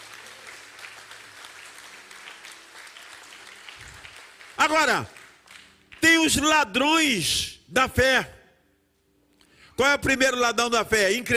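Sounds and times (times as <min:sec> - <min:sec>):
audience applause: 0:00.0 - 0:05.9
speech: 0:04.6 - 0:05.2, 0:06.2 - 0:08.4, 0:09.8 - 0:11.3.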